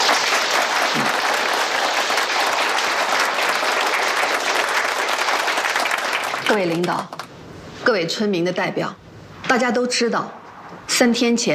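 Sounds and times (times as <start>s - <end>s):
audience applause welcoming speaker: 0.0s - 7.3s
speech: 6.5s - 7.2s, 7.9s - 11.5s.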